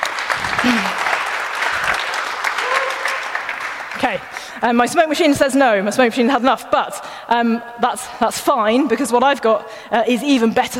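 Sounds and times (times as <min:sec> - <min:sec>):
audience applause: 0:00.0 - 0:04.6
speech: 0:00.6 - 0:01.0, 0:04.1 - 0:10.7.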